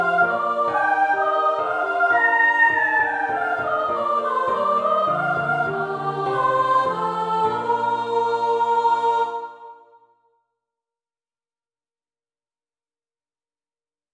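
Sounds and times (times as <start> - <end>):
soprano singing: 0.0 - 10.0.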